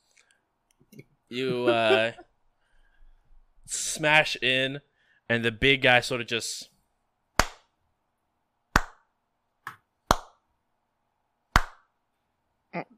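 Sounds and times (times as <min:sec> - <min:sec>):
speech: 0:00.9 - 0:02.3, 0:03.7 - 0:06.7
laughter: 0:01.4 - 0:02.2
sharp hand claps: 0:07.4 - 0:07.7, 0:08.7 - 0:10.4, 0:11.5 - 0:11.9.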